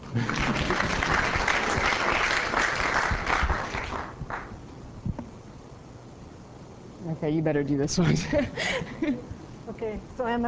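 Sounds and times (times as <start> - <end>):
audience clapping after a talk: 0.0 - 4.6
speech: 0.2 - 0.6, 7.2 - 10.4.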